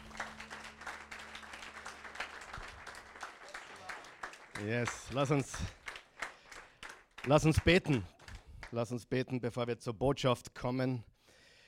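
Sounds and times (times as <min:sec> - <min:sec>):
audience applause: 0:00.0 - 0:08.7
speech: 0:04.6 - 0:05.8, 0:07.2 - 0:08.1, 0:08.7 - 0:11.1.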